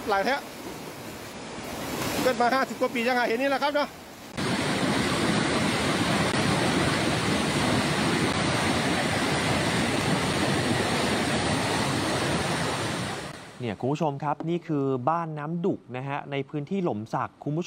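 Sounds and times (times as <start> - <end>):
speech: 0.0 - 0.6, 2.2 - 4.0, 13.6 - 17.6
muddy floodwater rushing after heavy overnight rain at Ban Nam Duk in Lom Sak: 0.0 - 13.6.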